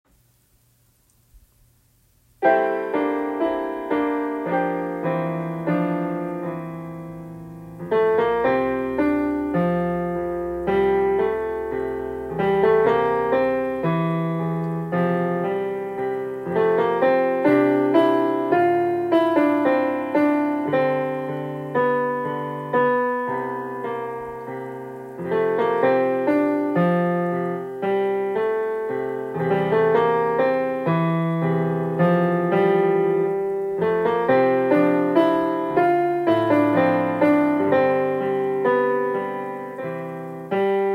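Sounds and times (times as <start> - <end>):
melody: 2.4 - 40.9.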